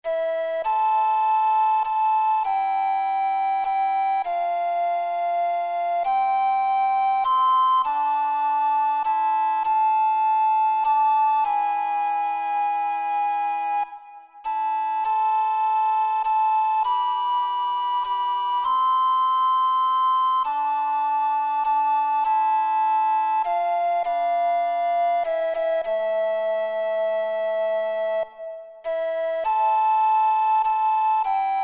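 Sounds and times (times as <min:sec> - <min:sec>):
various flutes playing in two voices: 0:00.0 - 0:31.6.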